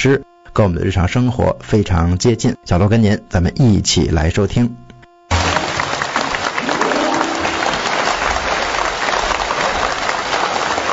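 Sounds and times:
speech: 0:00.0 - 0:04.8
audience applause: 0:05.3 - 0:10.9.

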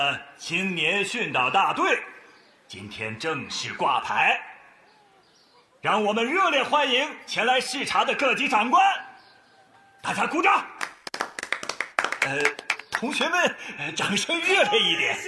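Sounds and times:
speech: 0:00.0 - 0:04.5, 0:05.8 - 0:09.1, 0:10.0 - 0:10.8, 0:12.2 - 0:15.2
group applause, clapping hands: 0:10.7 - 0:13.4.

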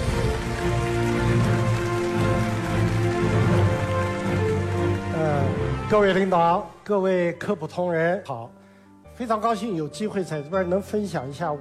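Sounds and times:
crowd applauding: 0:00.0 - 0:06.7
speech: 0:05.9 - 0:08.6, 0:09.2 - 0:11.6.

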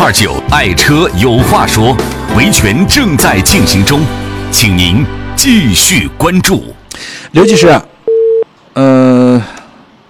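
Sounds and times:
speech: 0:00.0 - 0:07.9, 0:08.8 - 0:09.6
telephone line tone during a call placed from a studio: 0:08.1 - 0:08.4.

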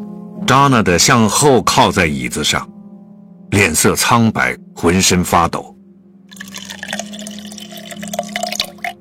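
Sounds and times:
speech: 0:00.5 - 0:02.7, 0:03.5 - 0:05.7
wine being poured into a glass: 0:06.3 - 0:08.9.

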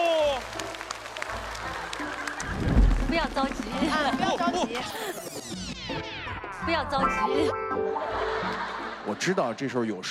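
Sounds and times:
applause: 0:00.0 - 0:04.7
speech: 0:03.3 - 0:06.1, 0:06.7 - 0:10.0
laughter: 0:03.6 - 0:05.6, 0:07.3 - 0:10.0.

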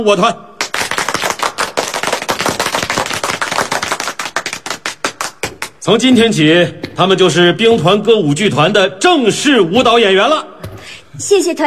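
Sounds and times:
speech: 0:00.0 - 0:00.5, 0:05.8 - 0:10.5, 0:11.2 - 0:11.6
warm applause from a group: 0:00.6 - 0:05.8.

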